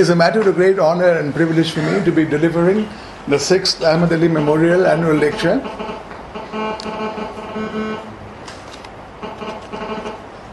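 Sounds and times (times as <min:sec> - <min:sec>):
speech: 0:00.0 - 0:07.8
steady hum: 0:00.0 - 0:10.5
phone ringing with buzzy electronic tone: 0:05.2 - 0:08.1, 0:09.2 - 0:10.2.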